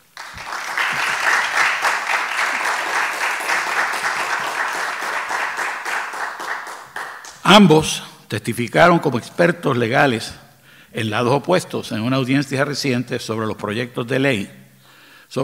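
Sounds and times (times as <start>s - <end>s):
audience applause: 0.0s - 7.4s
speech: 7.5s - 14.6s.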